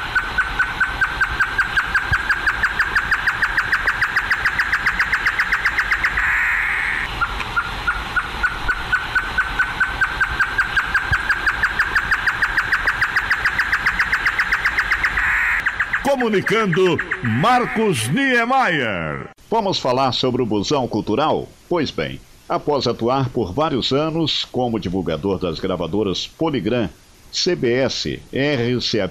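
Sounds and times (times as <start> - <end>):
chorró bird singing rapid trill: 0.1 - 7.7, 8.4 - 17.9
speech: 16.2 - 29.0.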